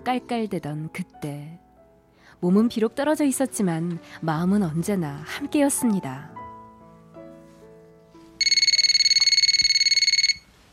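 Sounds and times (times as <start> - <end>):
speech: 0.0 - 1.6, 2.3 - 6.4
telephone ringing with electronic trill: 8.4 - 10.5.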